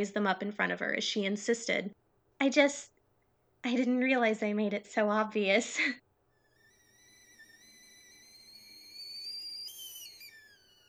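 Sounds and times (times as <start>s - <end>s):
speech: 0.0s - 2.9s, 3.6s - 6.0s
kettle whistling on the stove: 6.2s - 10.8s.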